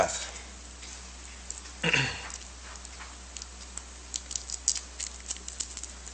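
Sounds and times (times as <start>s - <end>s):
cough drop paper wrapper crinkling: 1.3s - 6.1s.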